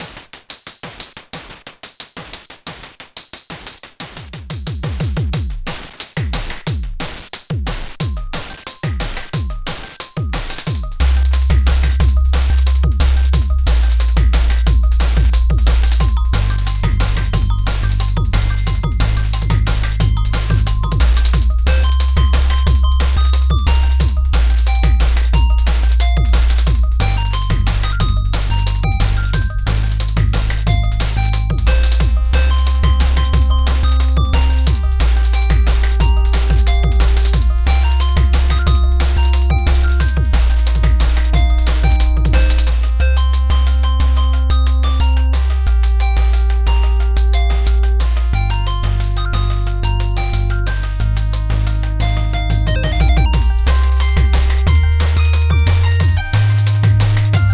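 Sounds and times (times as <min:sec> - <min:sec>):
liquid drum and bass music: 0:00.0 - 0:57.5.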